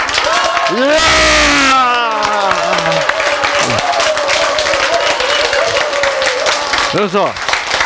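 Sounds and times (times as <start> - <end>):
audience doing marine corps style clap: 0.0 - 7.8
people shouting: 0.2 - 6.4
speech: 0.7 - 1.4, 6.9 - 7.4.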